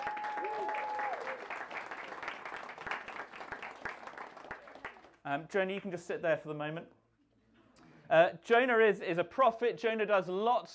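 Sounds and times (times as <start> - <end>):
audience applause: 0.0 - 5.2
speech: 5.2 - 7.0, 8.1 - 10.7.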